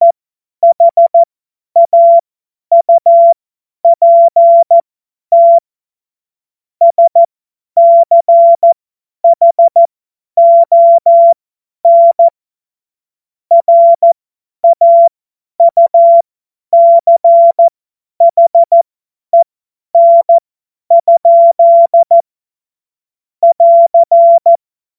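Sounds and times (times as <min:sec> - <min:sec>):
CW Morse code beeps: 0:00.6 - 0:05.6, 0:06.8 - 0:12.3, 0:13.5 - 0:16.2, 0:16.8 - 0:18.8, 0:19.4 - 0:22.2, 0:23.4 - 0:24.6.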